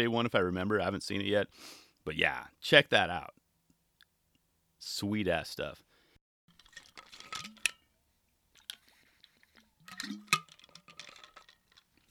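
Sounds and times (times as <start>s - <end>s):
speech: 0.0s - 3.4s, 4.8s - 5.9s, 10.0s - 10.3s
person drinking water: 8.5s - 12.0s.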